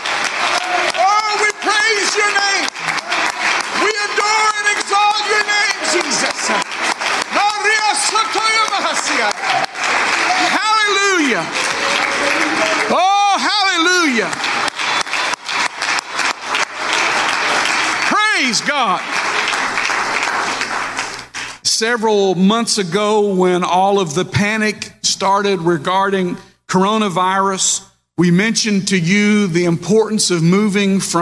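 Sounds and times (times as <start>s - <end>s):
audience clapping: 0.0s - 21.6s
voices shouting and crying out: 0.3s - 14.7s
speech: 21.8s - 31.2s.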